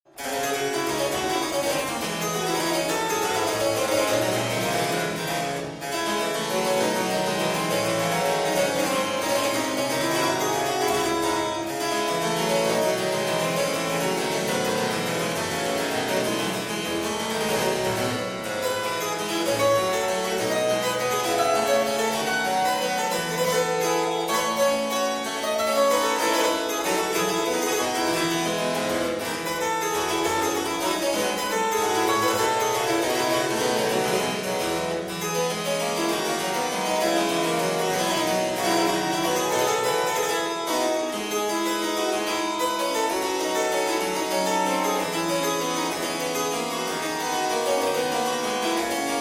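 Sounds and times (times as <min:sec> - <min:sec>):
baroque dance piece: 0:00.0 - 0:49.1.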